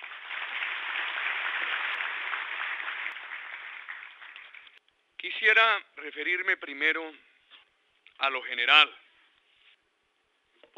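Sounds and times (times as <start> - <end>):
audience applause: 0.0 - 4.8
speech: 5.2 - 7.3, 8.2 - 9.0.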